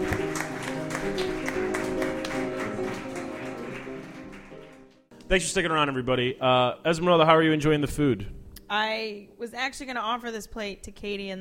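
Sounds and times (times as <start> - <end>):
group clapping: 0.0 - 5.1
speech: 5.3 - 11.3.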